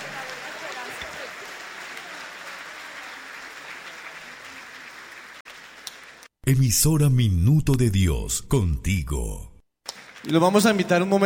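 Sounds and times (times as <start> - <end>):
audience applause: 0.0 - 6.4, 9.9 - 11.2
speech: 6.5 - 9.5, 10.2 - 11.2.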